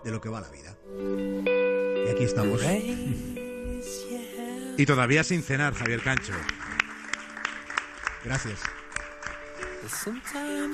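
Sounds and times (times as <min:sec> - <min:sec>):
speech: 0:00.0 - 0:04.1, 0:04.8 - 0:06.6, 0:08.2 - 0:08.8, 0:09.8 - 0:10.7
applause claps: 0:05.4 - 0:10.7.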